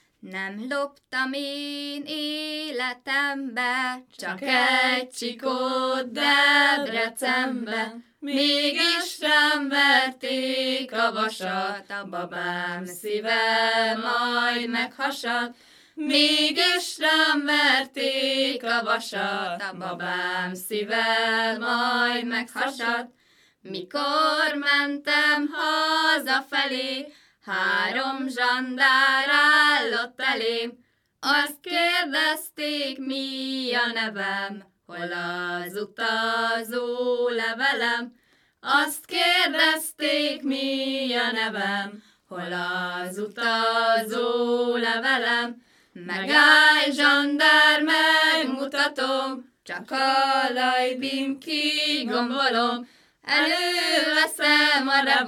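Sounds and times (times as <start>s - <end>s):
Hungarian folk song: 0.0s - 55.2s.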